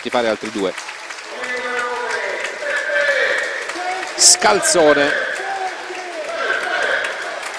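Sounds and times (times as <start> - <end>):
speech: 0.0 - 0.9, 4.2 - 5.4
stadium crowd applauding: 0.0 - 7.5.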